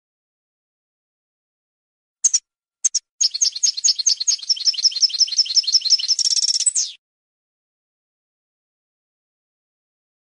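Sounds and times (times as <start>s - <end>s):
European goldfinch twittering: 2.2s - 7.0s.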